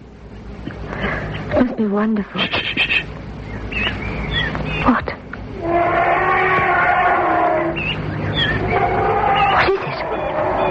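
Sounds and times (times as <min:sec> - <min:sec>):
speech: 0:01.5 - 0:03.0
young elephant calling in distress: 0:02.4 - 0:04.9, 0:05.6 - 0:10.6.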